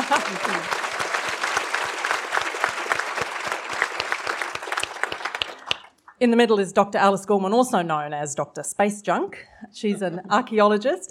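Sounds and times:
laughter: 0.0s - 1.0s, 9.8s - 10.4s
audience clapping: 0.0s - 6.2s
speech: 0.1s - 0.8s, 6.2s - 11.0s.

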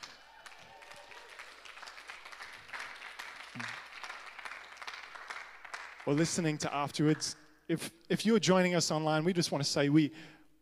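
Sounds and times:
audience applause: 0.0s - 6.4s
speech: 3.6s - 3.8s, 6.0s - 10.4s.

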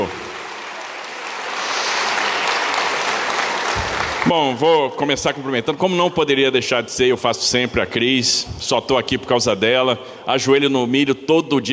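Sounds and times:
audience clapping: 0.0s - 6.5s
speech: 4.2s - 11.7s.

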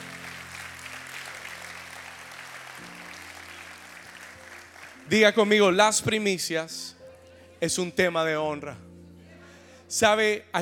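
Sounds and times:
church audience applauding: 0.0s - 5.7s
speech: 5.1s - 7.0s, 7.6s - 8.9s, 9.9s - 10.6s.

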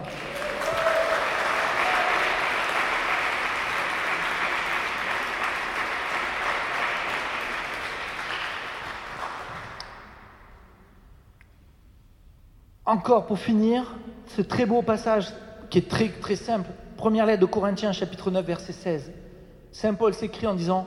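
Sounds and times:
audience applause: 0.0s - 10.3s
speech: 12.9s - 20.8s.

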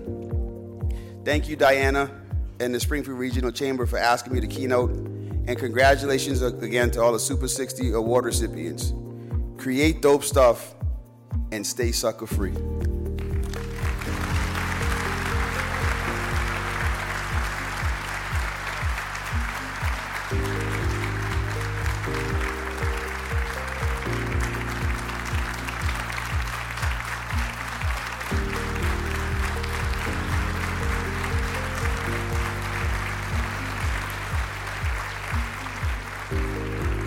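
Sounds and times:
speech: 1.2s - 9.0s, 9.6s - 10.8s, 11.5s - 12.8s
loud music playing sustained chords: 12.4s - 37.0s
standing ovation applause after a keynote speech at a chamber of commerce awards event: 13.2s - 37.0s.

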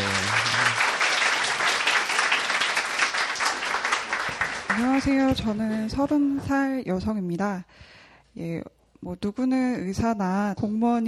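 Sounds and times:
audience applause: 0.0s - 5.3s
speech: 4.9s - 11.0s.

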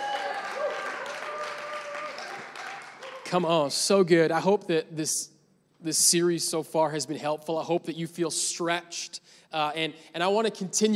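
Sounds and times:
church congregation clapping and cheering during a service: 0.0s - 3.9s
speech: 3.3s - 10.9s.

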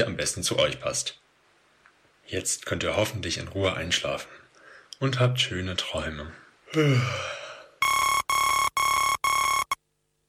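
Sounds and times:
speech: 0.0s - 1.2s, 2.3s - 4.4s, 5.0s - 7.4s
person sighing or yawning: 6.7s - 7.8s
alarm clock beeping: 7.8s - 9.8s.

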